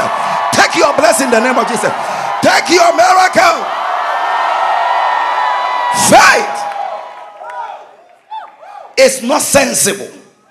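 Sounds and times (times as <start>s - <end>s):
crowd screaming and cheering: 0.0s - 9.6s
speech: 1.1s - 3.8s, 6.0s - 6.6s, 9.0s - 10.2s.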